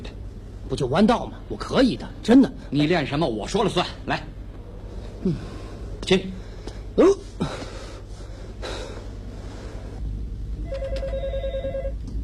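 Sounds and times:
speech: 0.7 - 4.4, 5.2 - 6.4, 7.0 - 7.2
telephone ringing: 10.6 - 12.0.

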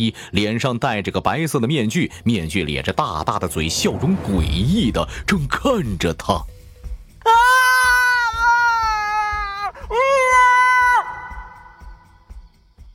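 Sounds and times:
speech: 0.0 - 6.6
shrill terrified scream in the Kaifeng prefecture office: 7.2 - 11.8.

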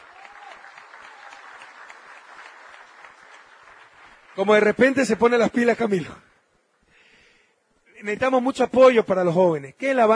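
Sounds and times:
audience applause at a political event: 0.0 - 5.4
speech: 4.4 - 6.3, 8.0 - 10.1.

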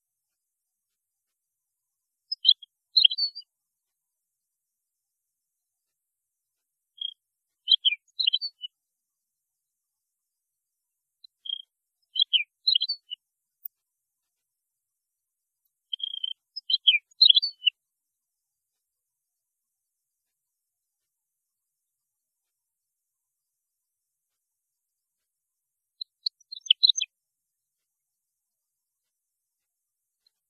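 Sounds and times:
European goldfinch song: 2.3 - 3.5, 7.0 - 8.7, 11.3 - 13.2, 15.9 - 17.7, 26.0 - 27.1.

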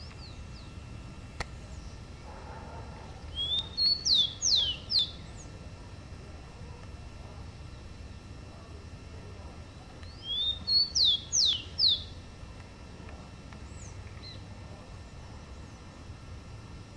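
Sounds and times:
rufous-collared sparrow singing: 3.3 - 5.5, 10.0 - 12.2.

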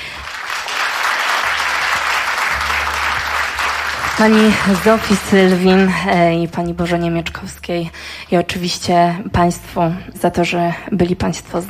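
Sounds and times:
concert audience applauding: 0.0 - 5.6
speech: 4.2 - 11.6.

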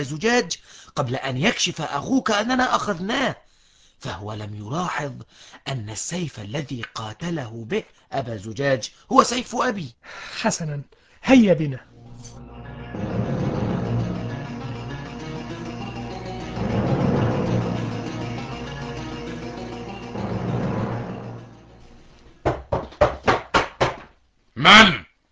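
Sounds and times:
speech: 0.0 - 12.5
busy music-like background: 12.0 - 22.4
knocking on a door in an animated series: 22.4 - 24.1.

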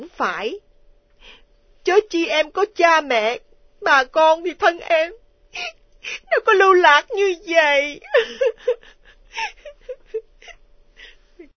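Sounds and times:
speech: 0.2 - 10.3
woman sobbing softly: 5.6 - 6.6, 7.8 - 11.5.

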